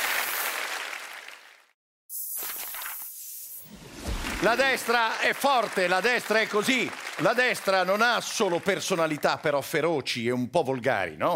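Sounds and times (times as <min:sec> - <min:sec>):
audience applause: 0:00.0 - 0:01.7, 0:04.1 - 0:09.6
speech: 0:04.4 - 0:11.3.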